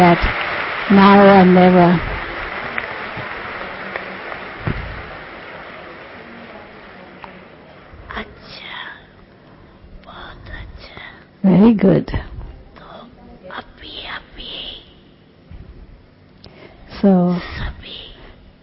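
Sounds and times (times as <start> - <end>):
speech: 0.0 - 2.1, 11.6 - 12.3
audience clapping: 0.0 - 8.2.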